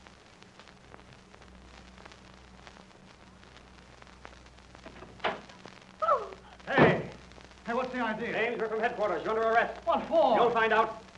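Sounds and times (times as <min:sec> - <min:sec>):
door being opened: 0:04.8 - 0:05.4
people talking: 0:06.0 - 0:11.1.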